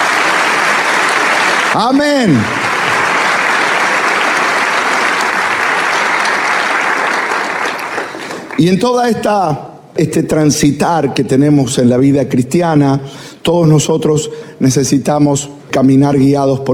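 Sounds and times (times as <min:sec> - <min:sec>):
audience applause: 0:00.0 - 0:08.7
speech: 0:01.8 - 0:02.6, 0:08.6 - 0:16.7.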